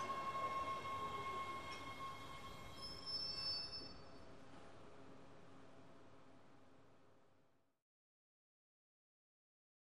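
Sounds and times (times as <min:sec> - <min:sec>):
subway train accelerating: 0:00.0 - 0:06.3.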